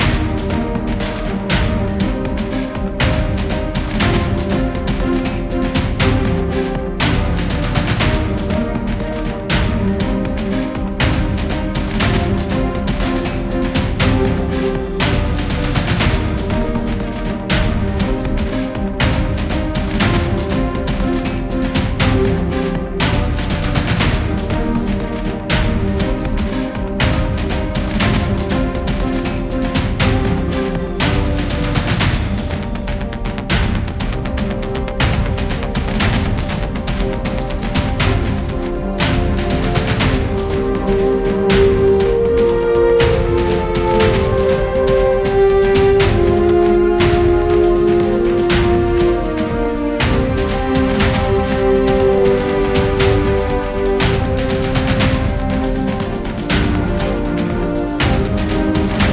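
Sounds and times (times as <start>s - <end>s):
mountain combat music: 0.0s - 59.1s.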